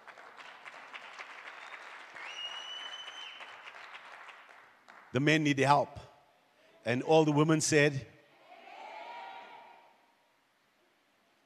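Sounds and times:
crowd applause: 0.0s - 5.1s
high sustained whistle: 1.5s - 3.6s
speech: 5.1s - 6.0s, 6.8s - 8.1s.

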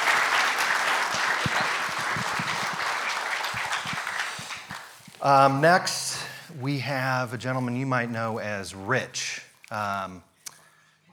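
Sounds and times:
audience applause: 0.0s - 5.8s
speech: 5.2s - 10.3s.

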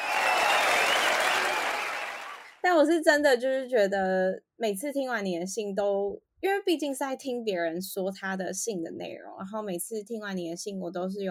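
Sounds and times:
crowd applause: 0.0s - 2.6s
speech: 2.8s - 11.2s.

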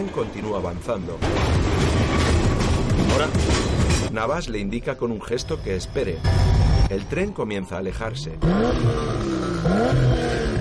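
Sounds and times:
speech: 0.0s - 2.3s, 3.0s - 10.5s
stationary Porsche engine revving with clutch held: 8.3s - 10.5s.

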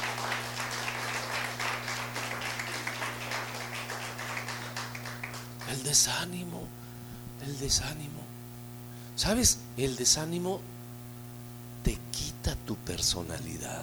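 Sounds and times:
audience applause: 0.0s - 6.0s
speech: 5.7s - 6.8s, 7.4s - 8.3s, 9.2s - 10.8s, 11.8s - 13.8s.

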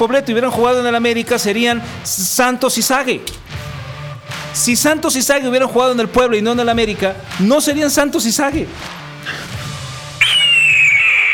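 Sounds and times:
speech: 0.0s - 3.7s, 4.5s - 9.4s
eagle cry sound effect: 10.2s - 11.3s.

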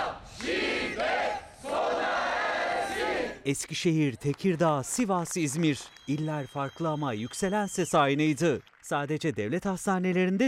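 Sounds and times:
crowd chanting during a protest march: 0.0s - 3.4s
speech: 3.4s - 10.4s.

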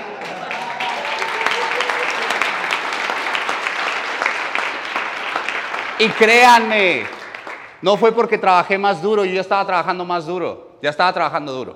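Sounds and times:
audience applause: 0.0s - 7.8s
speech: 6.0s - 7.2s, 7.8s - 11.7s.

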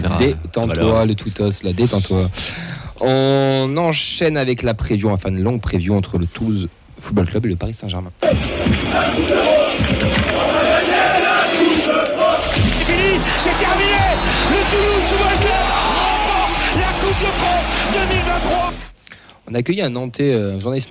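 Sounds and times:
speech: 0.2s - 9.6s, 19.5s - 20.8s
crowd shouting and yelling in a football preview jingle: 8.2s - 18.9s
low musical bed: 12.4s - 19.0s.

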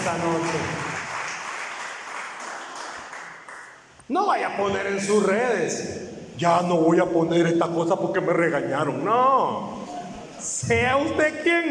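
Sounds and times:
audience applause: 0.0s - 3.8s
speech: 0.1s - 0.9s, 4.1s - 9.8s, 10.5s - 11.6s.

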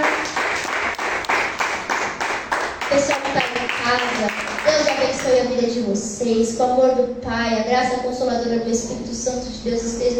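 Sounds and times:
audience clapping: 0.0s - 5.4s
speech: 2.9s - 10.1s.

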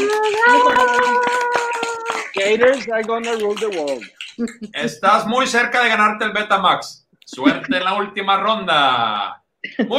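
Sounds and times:
crowd applause: 0.0s - 5.0s
speech: 2.5s - 9.9s.

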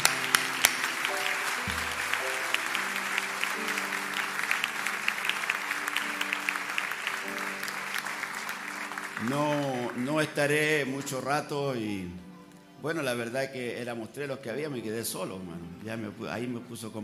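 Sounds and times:
audience applause: 0.0s - 11.3s
soft sustained musical tones: 0.0s - 17.0s
speech: 9.2s - 12.2s, 12.8s - 17.0s.

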